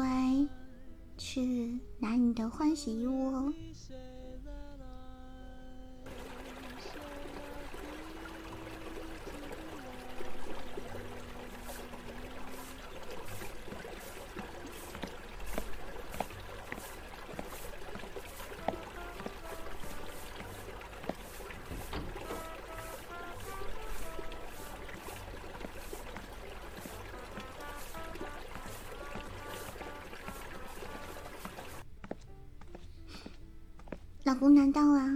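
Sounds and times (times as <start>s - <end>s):
speech: 1.2s - 4.2s, 34.4s - 35.1s
splashy drips: 6.1s - 31.9s
hot water running for a bath: 6.1s - 32.2s.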